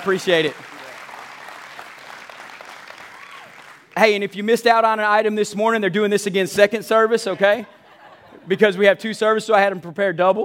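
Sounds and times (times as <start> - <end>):
speech: 0.0 - 0.7, 4.0 - 7.8, 8.5 - 10.4
room full of people applauding: 0.0 - 4.2
laughter: 7.2 - 8.7.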